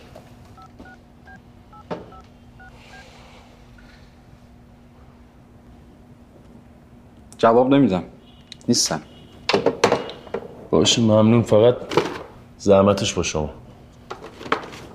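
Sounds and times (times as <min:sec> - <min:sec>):
touch-tone beeps of a telephone being dialed: 0:00.6 - 0:03.0
speech: 0:07.4 - 0:09.6, 0:10.8 - 0:13.6.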